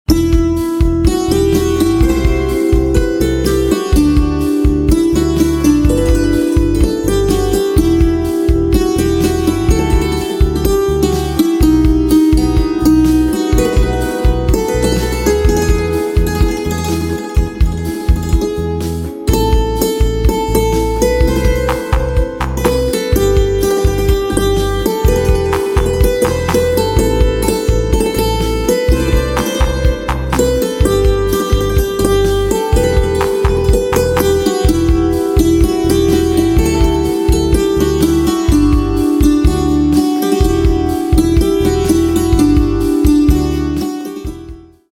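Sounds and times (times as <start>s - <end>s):
instrumental santoor playing: 0.1s - 44.9s.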